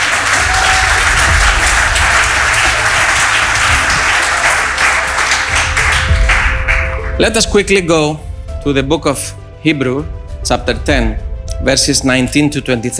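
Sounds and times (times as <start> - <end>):
people clapping: 0.0 - 7.4
speech: 7.2 - 12.9.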